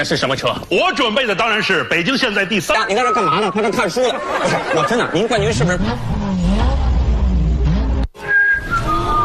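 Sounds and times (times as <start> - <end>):
speech: 0.0 - 6.4
laughter: 3.1 - 5.8
car engine revving with whining tone: 5.2 - 9.2.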